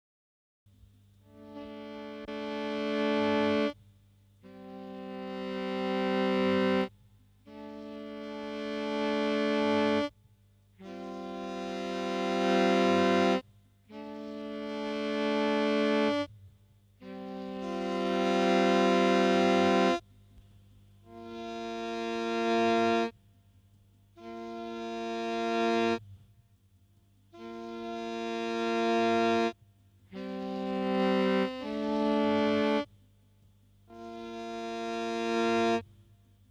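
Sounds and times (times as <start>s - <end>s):
saxophone: 1.3s - 3.8s, 4.4s - 10.1s, 10.8s - 16.4s, 17.0s - 20.0s, 21.0s - 23.2s, 24.2s - 26.1s, 27.4s - 32.9s, 33.9s - 35.9s.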